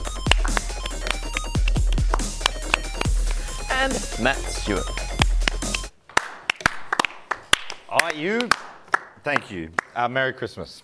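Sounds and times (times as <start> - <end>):
loud sharp hand claps: 0.0 - 10.0
speech: 3.8 - 5.0, 8.1 - 8.6, 9.2 - 10.8.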